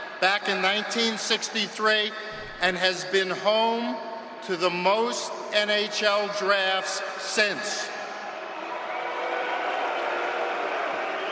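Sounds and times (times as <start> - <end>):
speech: 0.2 - 8.0
large crowd booing: 8.0 - 11.3.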